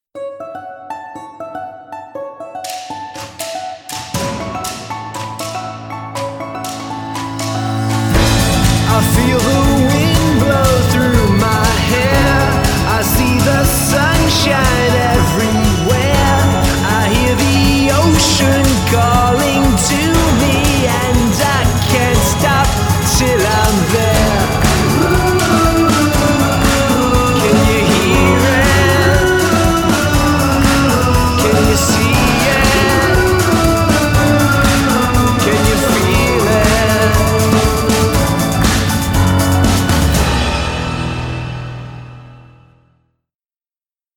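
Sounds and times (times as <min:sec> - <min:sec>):
vocals: 0:06.6 - 0:41.3.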